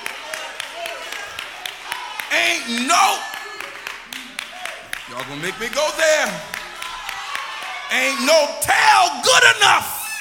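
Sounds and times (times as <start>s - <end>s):
hand clapping: 0.0s - 7.8s
speech: 2.4s - 3.4s, 5.1s - 6.5s, 7.9s - 9.9s.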